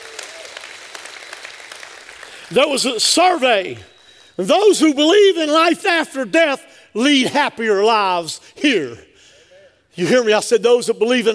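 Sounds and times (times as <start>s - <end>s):
audience clapping: 0.0s - 3.9s
speech: 2.5s - 9.1s, 10.0s - 11.3s.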